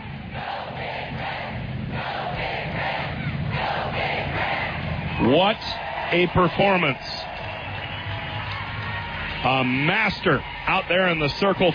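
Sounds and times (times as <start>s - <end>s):
large stadium crowd roaring: 0.0s - 11.7s
stadium crowd standing and clapping along: 4.3s - 11.7s
speech: 5.2s - 7.3s, 9.4s - 11.7s.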